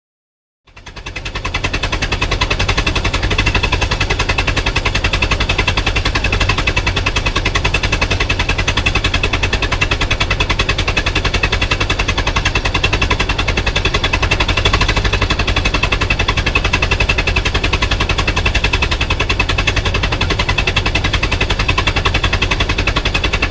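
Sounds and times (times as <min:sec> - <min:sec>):
Model T Ford constant idling: 0:00.7 - 0:23.4.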